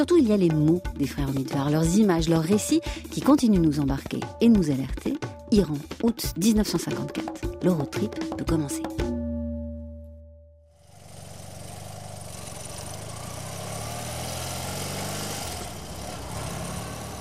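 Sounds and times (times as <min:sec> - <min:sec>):
speech: 0:00.0 - 0:09.2
car engine droning on a sandy desert track in Iran: 0:10.8 - 0:17.2.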